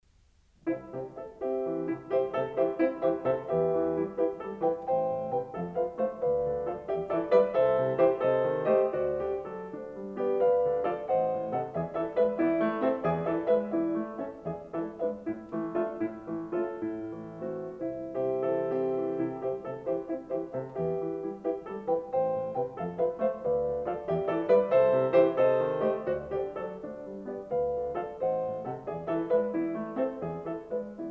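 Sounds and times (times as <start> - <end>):
piano intermezzo in C major: 0.0 - 31.0.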